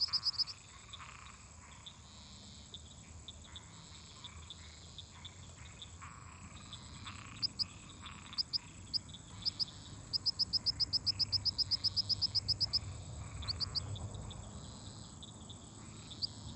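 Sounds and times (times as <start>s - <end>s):
crickets singing: 0.0s - 16.5s.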